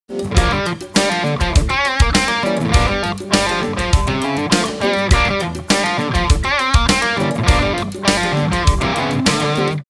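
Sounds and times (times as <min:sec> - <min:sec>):
musical riff: 0:00.1 - 0:09.8.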